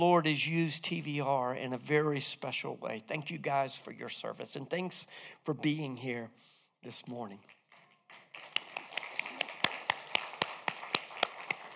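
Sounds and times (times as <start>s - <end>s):
speech: 0.0s - 7.6s
modest audience applause: 7.7s - 11.7s.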